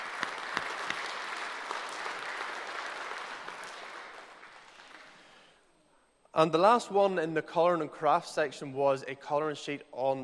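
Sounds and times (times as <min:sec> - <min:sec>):
applause: 0:00.0 - 0:05.6
speech: 0:06.4 - 0:10.2.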